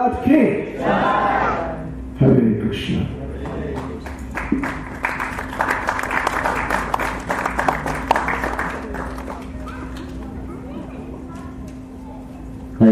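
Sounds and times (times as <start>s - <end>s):
speech: 0.0s - 1.5s, 2.2s - 3.2s
audience applause: 3.4s - 10.4s.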